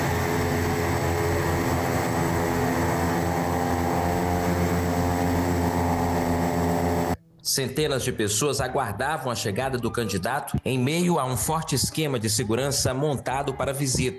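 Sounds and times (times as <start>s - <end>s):
aircraft landing at Teófilo Otoni airport: 0.0s - 7.2s
speech: 7.5s - 14.1s.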